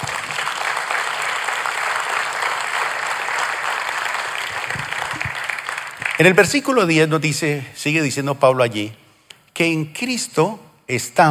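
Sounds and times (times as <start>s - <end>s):
audience applause: 0.0s - 6.6s
speech: 6.2s - 9.0s, 9.6s - 11.2s.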